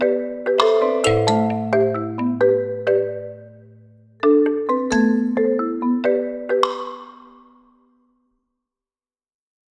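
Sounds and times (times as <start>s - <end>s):
slow comic marimba: 0.0s - 7.7s.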